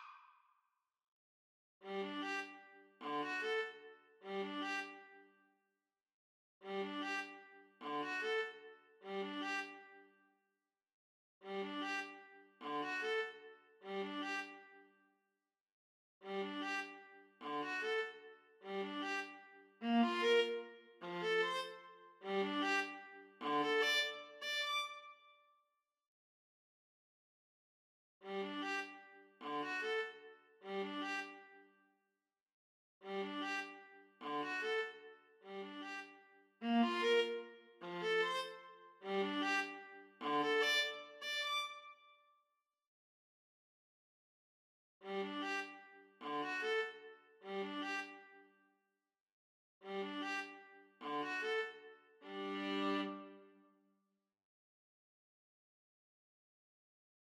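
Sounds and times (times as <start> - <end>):
viola duet: 1.8 - 5.1, 6.6 - 9.9, 11.4 - 14.7, 16.2 - 25.0, 28.2 - 31.5, 33.0 - 41.9, 45.0 - 48.3, 49.8 - 53.6.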